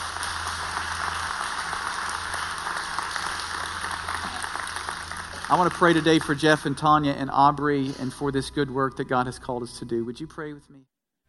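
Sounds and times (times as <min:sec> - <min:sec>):
crowd clapping: 0:00.0 - 0:07.9
low hum: 0:00.0 - 0:10.8
speech: 0:05.5 - 0:11.0.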